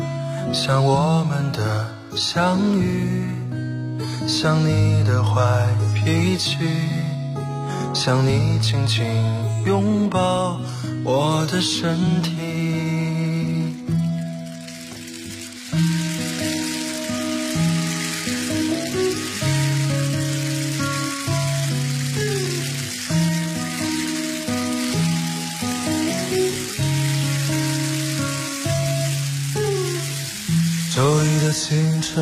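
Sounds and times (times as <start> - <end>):
speech: 0.5 - 7.0, 7.9 - 12.4
rain falling: 12.0 - 32.1.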